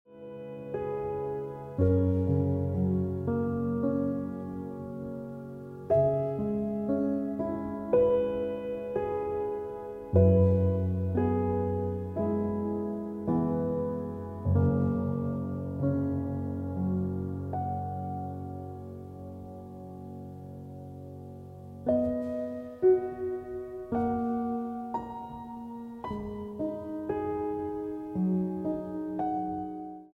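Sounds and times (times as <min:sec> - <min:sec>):
piano ringtone music: 0:00.1 - 0:30.1.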